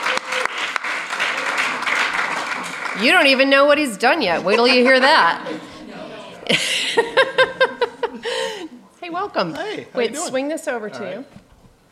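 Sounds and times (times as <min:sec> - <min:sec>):
audience applause welcoming a guest on stage: 0:00.0 - 0:05.8
speech: 0:03.0 - 0:05.7, 0:09.2 - 0:11.8
laughter: 0:04.0 - 0:08.8.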